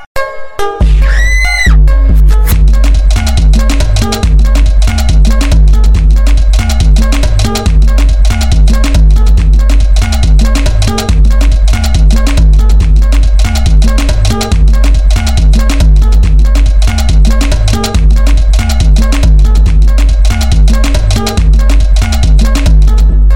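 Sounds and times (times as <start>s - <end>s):
pure drum beat: 0.8s - 23.2s.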